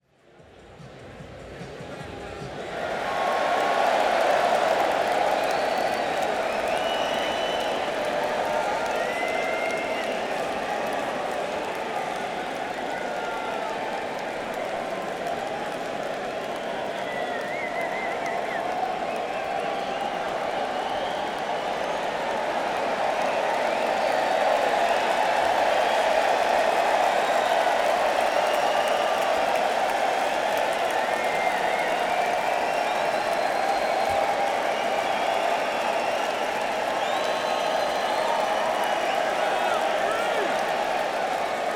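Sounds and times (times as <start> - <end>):
crowd: 0.0 - 41.7.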